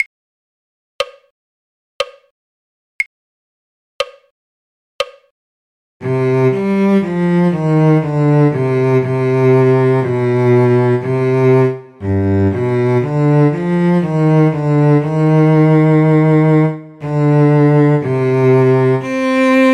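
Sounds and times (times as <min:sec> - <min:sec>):
cello: 0:06.0 - 0:19.7.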